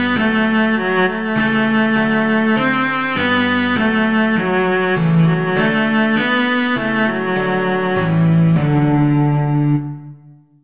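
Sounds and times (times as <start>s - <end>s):
cello playing: 0.0s - 10.4s.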